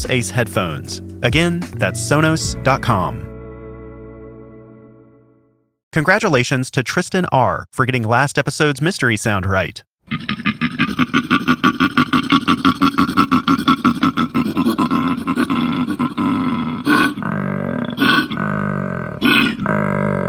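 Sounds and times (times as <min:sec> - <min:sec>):
speech: 0:00.0 - 0:03.3, 0:06.0 - 0:11.3
male koala bellowing and grunting: 0:10.1 - 0:20.2.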